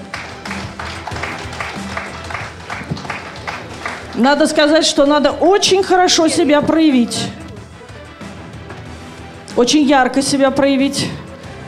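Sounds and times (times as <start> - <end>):
audience applause: 0.0 - 4.6
speech: 4.2 - 7.4, 9.6 - 11.2.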